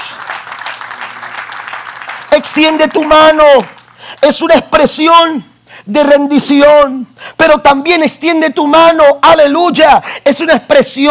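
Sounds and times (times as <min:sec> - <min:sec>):
crowd applauding: 0:00.0 - 0:04.2
speech: 0:02.4 - 0:11.0.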